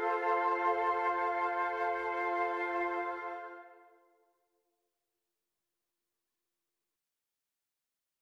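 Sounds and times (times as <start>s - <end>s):
flute quartet: 0.0s - 3.9s.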